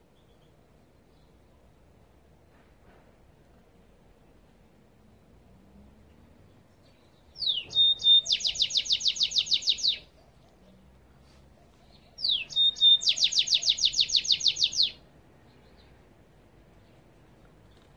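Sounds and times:
goldfinch twittering song: 7.4s - 10.1s, 12.2s - 15.0s.

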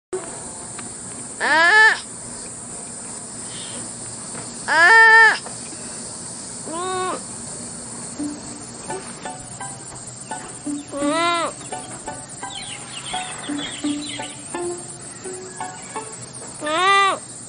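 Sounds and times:
sloth bleating: 1.4s - 2.1s, 4.7s - 5.4s, 6.7s - 7.2s, 10.7s - 11.6s, 12.7s - 17.2s.

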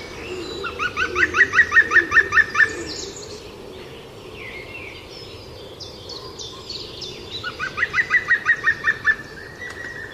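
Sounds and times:
European green woodpecker ringing calls: 0.0s - 3.2s, 7.4s - 10.1s.

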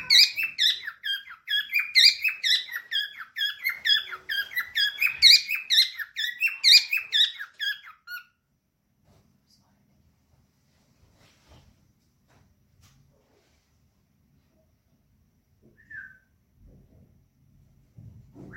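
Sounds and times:
parrot chattering: 0.0s - 8.3s.

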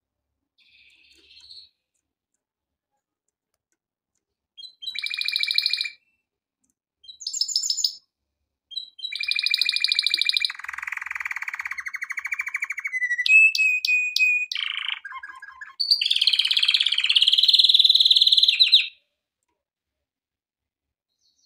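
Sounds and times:
canary song: 0.6s - 1.9s, 4.6s - 6.2s, 7.0s - 8.1s, 8.7s - 19.1s.

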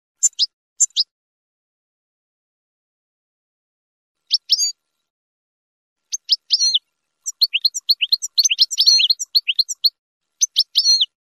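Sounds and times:
finch chirping: 0.2s - 1.0s, 4.3s - 4.8s, 6.1s - 11.2s.

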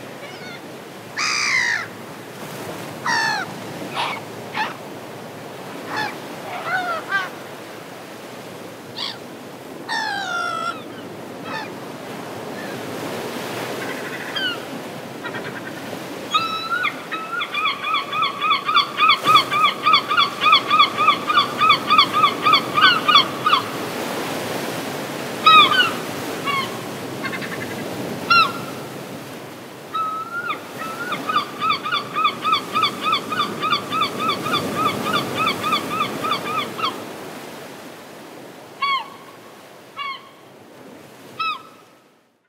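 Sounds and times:
seagull calling: 0.2s - 1.9s, 3.0s - 4.8s, 5.8s - 7.4s, 9.0s - 9.2s, 9.9s - 11.8s, 13.6s - 24.0s, 25.4s - 28.8s, 29.9s - 37.0s, 38.8s - 39.3s, 40.0s - 40.4s, 41.3s - 41.9s.

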